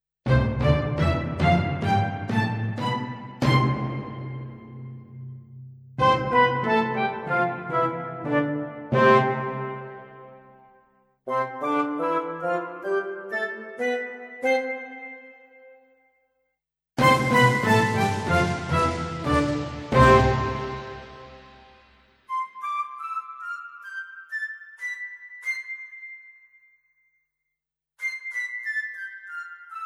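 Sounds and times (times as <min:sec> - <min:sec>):
musical scales: 0:00.3 - 0:04.6, 0:06.0 - 0:10.4, 0:11.3 - 0:15.7, 0:17.0 - 0:26.0.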